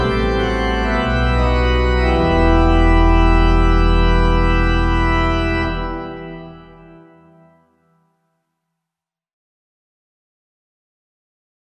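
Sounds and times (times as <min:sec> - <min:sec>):
organ: 0:00.0 - 0:08.1.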